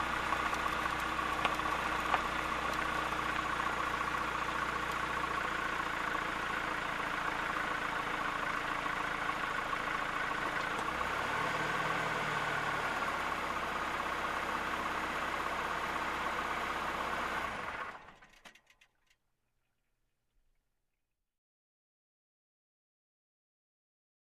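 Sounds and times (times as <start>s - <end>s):
car driving slowly on dirt road: 0.0s - 18.7s.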